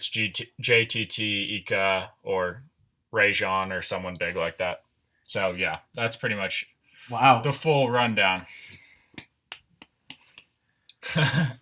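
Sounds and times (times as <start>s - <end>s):
speech: 0.0s - 8.8s, 11.0s - 11.6s
slow hand claps: 9.1s - 10.6s
laughter: 11.0s - 11.6s.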